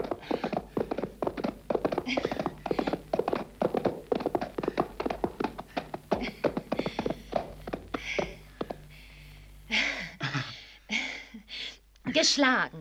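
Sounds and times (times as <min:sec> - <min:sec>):
horse galloping hoofbeats in a race: 0:00.0 - 0:10.2
speech: 0:12.2 - 0:12.7.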